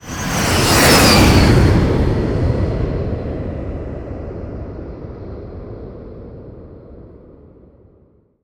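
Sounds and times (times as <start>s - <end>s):
jet flying by: 0.0s - 4.2s.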